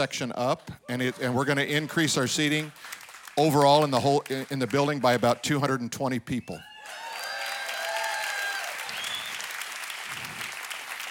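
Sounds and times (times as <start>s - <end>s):
speech: 0.0s - 6.7s
audience clapping: 1.7s - 5.9s, 6.7s - 11.0s.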